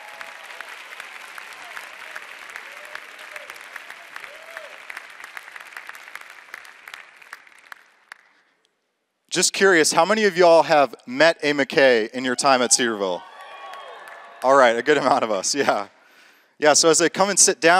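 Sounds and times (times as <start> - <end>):
cheers: 0.0 - 6.2, 12.3 - 14.9
audience at Cedarville clapping as a family comes to the stage: 0.0 - 8.7, 13.0 - 15.4
speech: 9.4 - 13.3, 14.4 - 16.0, 16.6 - 17.7.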